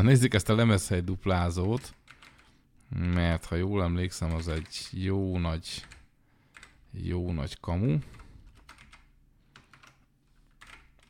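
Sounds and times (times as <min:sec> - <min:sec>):
speech: 0:00.0 - 0:02.0, 0:02.9 - 0:06.0, 0:06.9 - 0:08.2
typing on a PC keyboard: 0:01.6 - 0:02.5, 0:04.2 - 0:04.8, 0:08.1 - 0:11.0.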